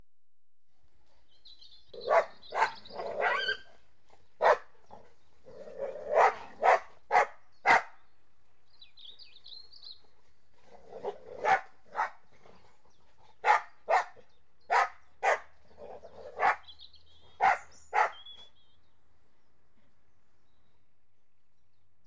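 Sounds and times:
Border Collies and Labradors barking while playing: 0:02.0 - 0:03.7, 0:04.4 - 0:05.0, 0:05.8 - 0:08.0, 0:11.0 - 0:12.2, 0:13.4 - 0:16.7, 0:17.3 - 0:18.3.

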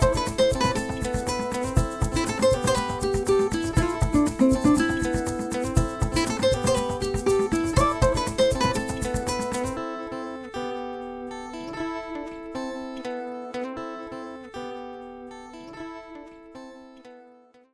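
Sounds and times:
world fusion music: 0:00.0 - 0:10.1.

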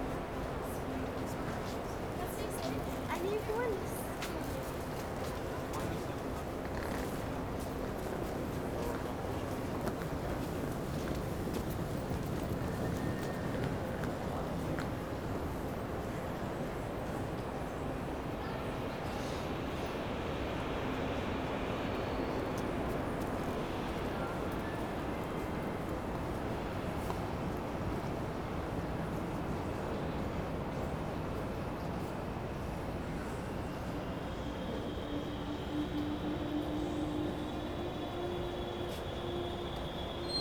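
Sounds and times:
Berlin Hauptbahnhof underground station hall ambience close to elevator: 0:00.0 - 0:40.3
distant trains arriving at Berlin Hauptbahnhof underground level: 0:00.0 - 0:40.3.

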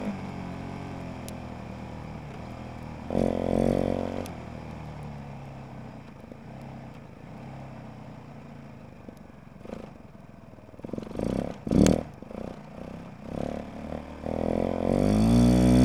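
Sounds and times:
Suzuki RMZ450 gearshifts onboard while driving: 0:00.0 - 0:13.7
Suzuki RMZ450 engine running onboard while driving: 0:00.0 - 0:15.8.

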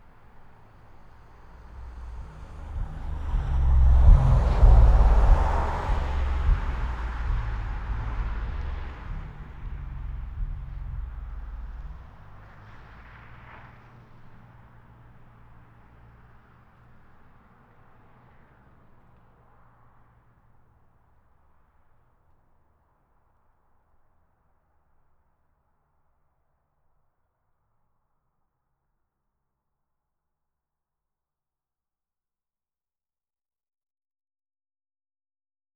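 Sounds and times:
car passing by outdoors: 0:00.0 - 0:21.8.

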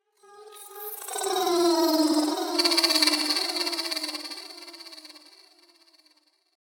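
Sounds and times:
vocals: 0:00.2 - 0:05.4.

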